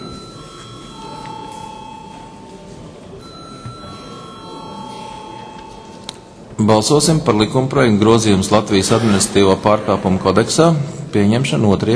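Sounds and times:
parliament chamber bell ringing before vote: 0.0s - 6.1s
speech: 6.6s - 11.9s.

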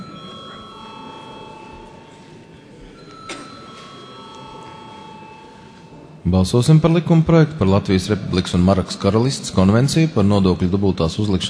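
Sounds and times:
parliament voting bell ringing: 0.0s - 6.2s
speech: 6.2s - 11.4s.

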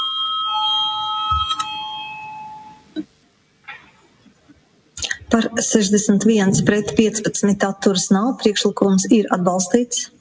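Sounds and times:
electric voting bell ringing in the Latvian parliament: 0.0s - 2.9s
speech: 5.3s - 10.1s.

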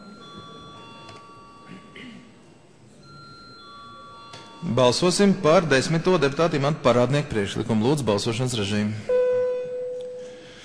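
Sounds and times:
parliament chamber electric bell ringing: 0.0s - 1.9s, 3.0s - 6.8s, 9.1s - 10.6s
low murmur of people moving and talking: 0.0s - 10.6s
speech: 4.6s - 9.1s.

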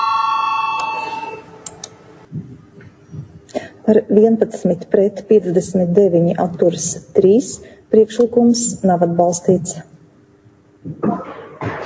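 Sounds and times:
parliament voting bell electronic tone: 0.0s - 1.5s
speech: 3.9s - 10.0s.

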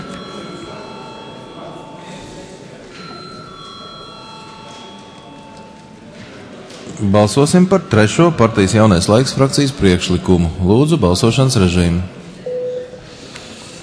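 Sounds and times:
parliament chamber voting bell ringing: 0.0s - 9.8s
murmur of many people talking: 0.0s - 13.8s
speech: 7.0s - 12.2s.

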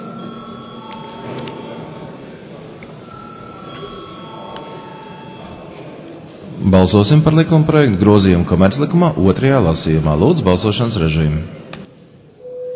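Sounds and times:
electric bell ringing to call a vote: 0.0s - 2.0s, 3.0s - 5.7s
chatter in a large chamber: 0.0s - 12.5s
speech: 6.6s - 11.6s.

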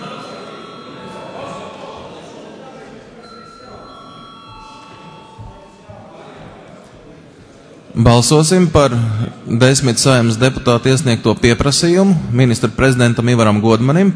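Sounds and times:
parliament voting bell ringing: 0.0s - 6.7s
speech: 8.0s - 14.1s.

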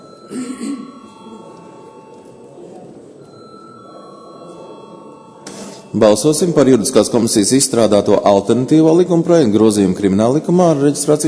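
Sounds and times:
parliament chamber bell ringing: 0.0s - 8.0s
speech: 0.3s - 0.6s, 5.9s - 11.2s.

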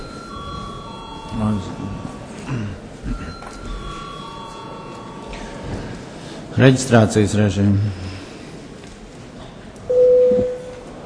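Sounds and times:
electric bell ringing for a break: 0.0s - 2.4s, 3.2s - 5.6s, 9.9s - 10.7s
murmur of people talking: 0.0s - 11.0s
speech: 1.3s - 3.4s, 6.6s - 8.1s.

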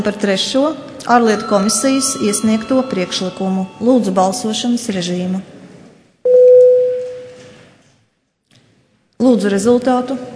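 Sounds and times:
speech: 0.0s - 5.5s, 9.3s - 10.3s
parliament voting bell ringing: 1.0s - 5.3s.

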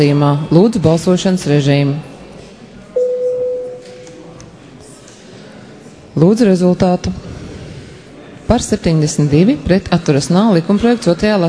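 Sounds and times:
speech: 0.0s - 2.1s, 6.2s - 7.3s, 8.5s - 11.4s
parliament voting bell: 3.0s - 4.1s.

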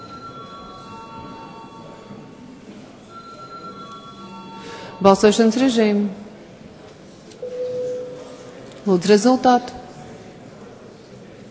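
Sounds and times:
parliament voting bell ringing: 0.0s - 2.3s, 3.1s - 5.1s
speech: 5.0s - 6.2s, 8.9s - 9.8s.

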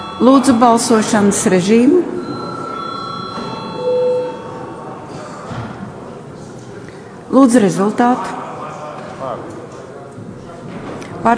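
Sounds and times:
parliament voting bell ringing: 0.0s - 5.1s
speech: 0.2s - 2.4s, 7.4s - 8.4s.

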